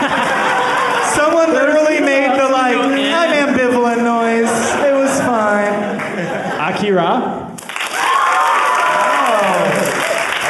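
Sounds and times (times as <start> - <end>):
audience applause: 0.0 - 2.7, 7.6 - 10.4
laughter: 0.0 - 7.0, 9.1 - 10.4.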